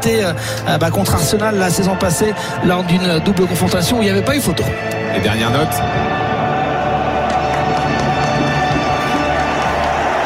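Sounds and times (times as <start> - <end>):
speech: 0.0 - 6.3
large stadium crowd roaring and cheering: 5.7 - 10.2
scattered claps: 7.1 - 10.2.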